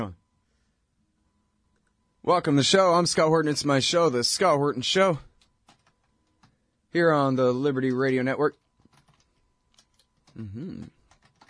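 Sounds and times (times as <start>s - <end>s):
speech: 0.0s - 0.2s, 2.2s - 5.3s, 6.9s - 8.6s, 10.4s - 11.0s
typing a blog entry on a computer keyboard: 5.3s - 6.6s, 7.7s - 11.4s
voice murmuring: 10.3s - 11.0s.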